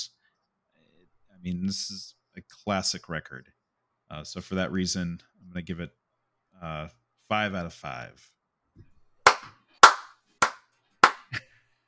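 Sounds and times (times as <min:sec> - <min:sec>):
speech: 0:01.4 - 0:06.0, 0:06.6 - 0:08.9
hand claps: 0:09.3 - 0:11.4.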